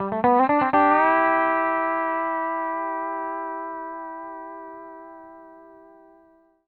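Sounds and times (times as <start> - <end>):
country music loop: 0.0 - 3.9.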